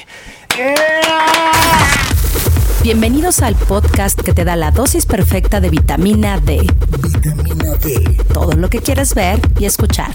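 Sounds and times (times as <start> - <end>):
applause for a guest: 0.4 - 1.8
speech: 0.6 - 1.2, 2.8 - 10.1.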